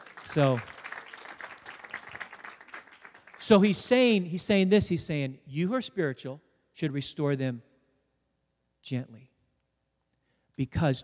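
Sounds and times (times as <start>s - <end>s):
audience applauding: 0.0s - 4.0s
speech: 0.3s - 0.7s, 3.5s - 7.7s, 8.8s - 9.3s, 10.6s - 11.0s.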